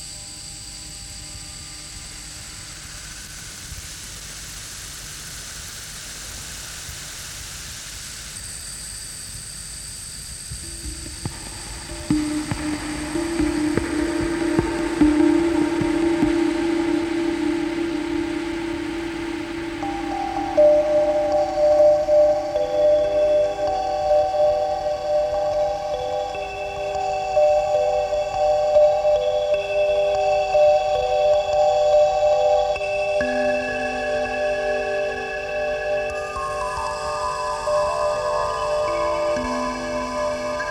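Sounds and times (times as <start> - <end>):
kalimba: 10.5 - 40.6.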